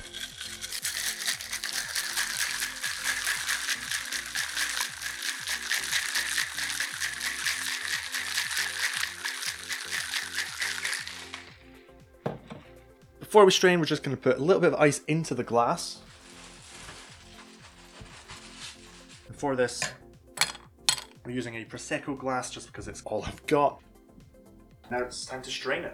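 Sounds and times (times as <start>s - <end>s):
cocktail shaker being shaken: 0.0s - 11.6s, 16.3s - 19.2s
speech: 13.3s - 16.0s, 19.4s - 20.0s, 21.3s - 23.9s, 24.9s - 25.9s.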